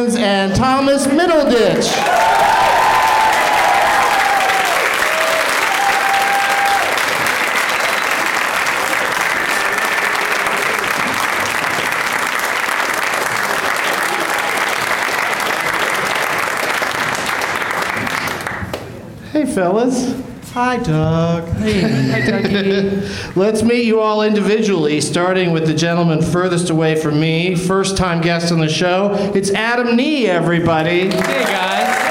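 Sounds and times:
speech: 0.0s - 2.8s, 19.6s - 31.7s
studio audience applause welcoming talk show guests: 1.8s - 18.9s, 30.8s - 32.0s
laughter: 21.5s - 23.2s.

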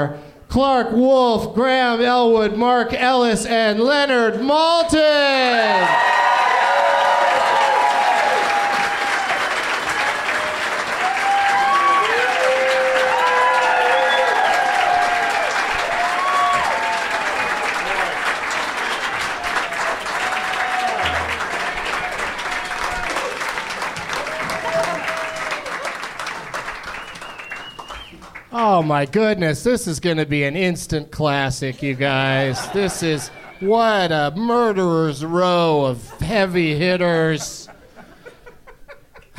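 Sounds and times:
speech: 0.0s - 6.2s, 28.8s - 37.7s
whoops and cheers: 5.4s - 26.0s
crowd applause: 5.7s - 28.6s
laughter: 31.7s - 34.0s, 36.0s - 39.3s.

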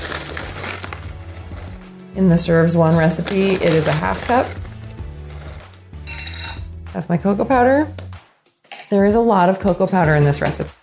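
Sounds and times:
dry rolled oats pouring into a nonstick skillet: 0.0s - 6.0s
speech: 2.2s - 4.7s, 7.0s - 8.0s, 8.9s - 10.7s.

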